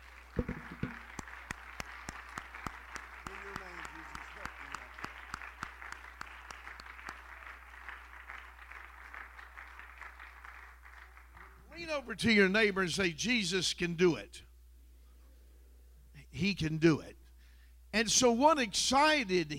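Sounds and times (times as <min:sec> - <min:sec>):
audience hand clap of praise: 0:00.0 - 0:11.7
speech: 0:12.0 - 0:14.5, 0:16.4 - 0:17.2, 0:18.0 - 0:19.5.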